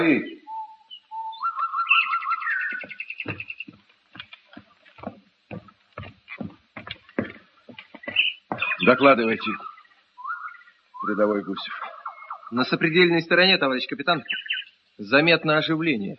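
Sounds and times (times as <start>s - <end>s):
speech: 0.0s - 0.4s, 8.9s - 9.7s, 11.0s - 11.8s, 12.5s - 16.1s
nightingales singing in spring: 0.0s - 15.8s.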